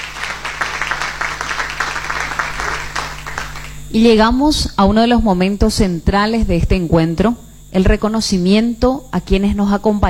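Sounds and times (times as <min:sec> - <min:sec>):
crowd applause: 0:00.0 - 0:03.8
speech: 0:03.9 - 0:10.0.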